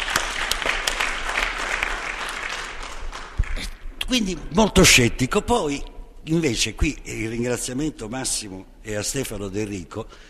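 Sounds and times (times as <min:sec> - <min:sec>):
audience applause: 0:00.0 - 0:03.8
speech: 0:04.1 - 0:10.2.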